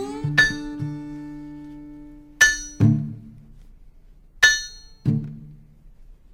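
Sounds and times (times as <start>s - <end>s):
steel-driving hammer striking steel: 2.4s - 3.1s, 4.4s - 5.1s.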